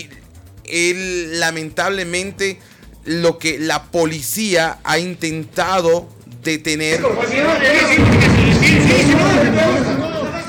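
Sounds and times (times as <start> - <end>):
speech: 0.0 - 10.0
dynamite explosions during street protest: 7.0 - 10.4.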